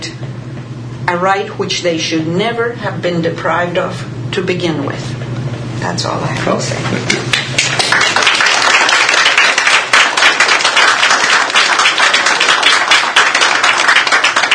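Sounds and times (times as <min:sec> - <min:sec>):
speech: 0:01.1 - 0:05.2, 0:05.8 - 0:07.5
crowd applause: 0:07.3 - 0:14.5.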